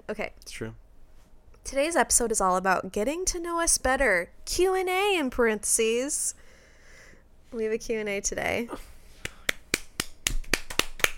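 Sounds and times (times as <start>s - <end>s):
speech: 0.1s - 0.8s, 1.6s - 6.4s, 7.5s - 8.9s
hand slapping a thigh: 9.2s - 11.1s.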